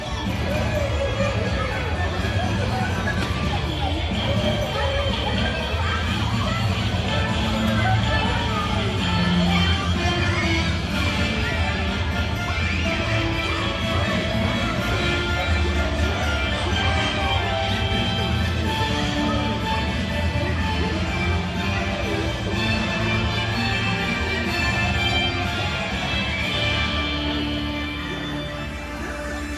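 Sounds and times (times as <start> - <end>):
parade crowd noise: 0.0 - 29.5.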